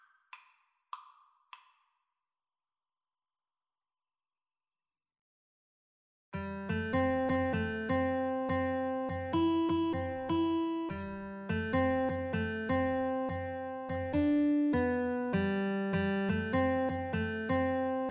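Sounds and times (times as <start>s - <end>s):
guitar duet: 6.4s - 18.1s.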